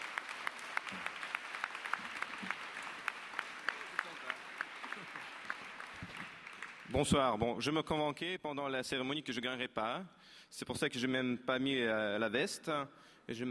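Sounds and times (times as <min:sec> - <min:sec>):
audience applause for the winner: 0:00.0 - 0:07.2
speech: 0:00.9 - 0:01.1, 0:07.0 - 0:13.4.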